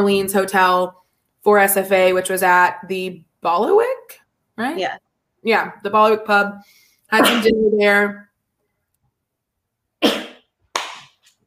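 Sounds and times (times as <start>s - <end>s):
speech: 0.0s - 8.3s
person sneezing: 10.0s - 10.5s.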